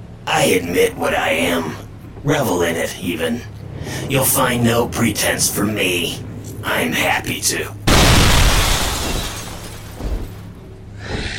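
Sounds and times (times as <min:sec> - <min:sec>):
speech: 0:00.3 - 0:07.8
stone, glass and wood breaking: 0:07.9 - 0:10.6
falling debris crunches: 0:07.9 - 0:10.7.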